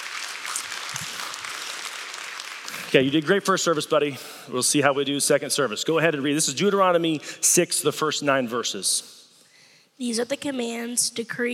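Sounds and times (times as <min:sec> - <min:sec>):
audience applause in a church service: 0:00.0 - 0:03.8
speech: 0:02.9 - 0:09.2, 0:10.0 - 0:11.5.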